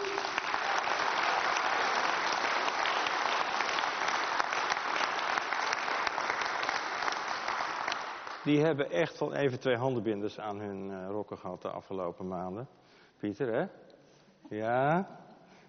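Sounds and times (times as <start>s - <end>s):
audience applause: 0.0s - 8.6s
speech: 8.4s - 13.8s, 14.5s - 15.2s.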